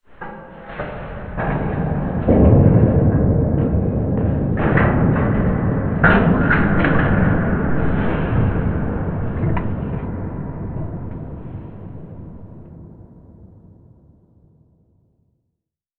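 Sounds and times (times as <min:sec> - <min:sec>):
distant big hit: 0:01.4 - 0:12.7.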